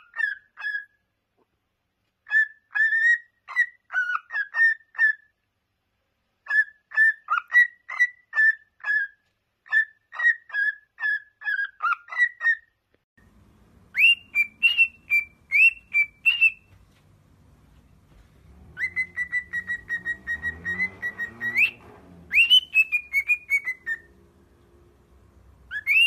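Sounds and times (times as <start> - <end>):
cockatiel whistled song: 2.3 - 5.3, 6.5 - 12.6, 13.9 - 16.7, 17.9 - 24.3, 25.2 - 26.0.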